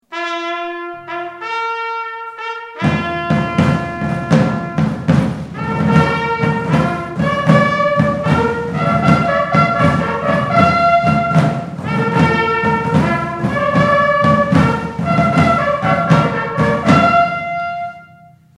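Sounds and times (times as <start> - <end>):
artillery recognition signal call: 0.1 - 18.5.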